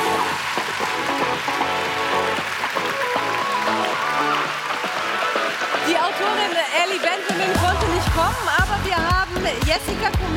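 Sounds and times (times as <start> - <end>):
voices cheering: 0.0 - 8.1
crowd clapping: 0.0 - 8.9
speech: 6.9 - 10.3.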